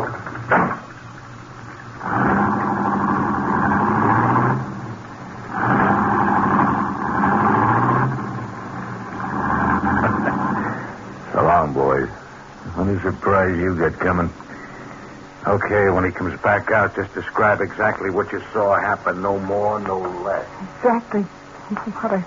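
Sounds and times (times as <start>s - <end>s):
car engine starting and driving off: 2.0s - 12.0s
speech: 13.4s - 14.4s, 15.6s - 22.2s.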